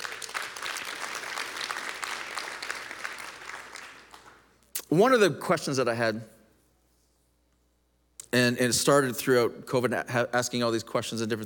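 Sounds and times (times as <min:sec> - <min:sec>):
audience applause: 0:00.0 - 0:04.4
speech: 0:04.9 - 0:06.4, 0:08.4 - 0:11.4.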